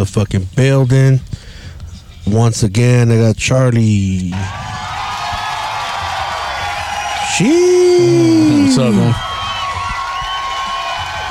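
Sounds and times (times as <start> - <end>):
speech: 0.0 - 1.4, 2.2 - 4.7, 7.4 - 9.2
applause and cheering: 4.3 - 11.2.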